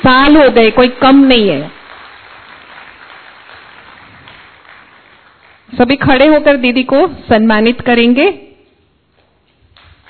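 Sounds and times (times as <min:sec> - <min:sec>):
speech: 0:00.0 - 0:01.8, 0:05.7 - 0:08.4
audience applauding: 0:01.7 - 0:05.7.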